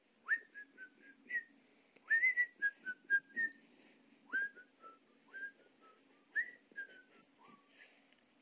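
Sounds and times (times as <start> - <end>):
person whistling: 0.2 - 1.5, 2.1 - 3.6, 4.3 - 7.9.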